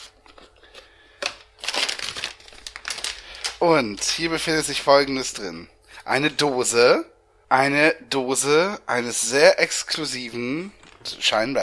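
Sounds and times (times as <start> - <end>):
crinkly packaging crinkling as a box is opened: 0.0 - 4.4
speech: 3.6 - 11.6.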